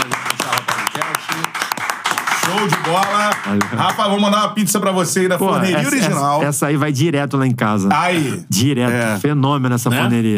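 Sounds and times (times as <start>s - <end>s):
hand clapping welcoming a guest: 0.0s - 4.2s
speech: 2.6s - 10.3s.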